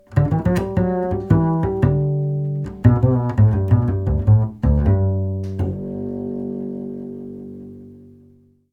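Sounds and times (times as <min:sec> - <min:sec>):
bass jingle: 0:00.2 - 0:08.7.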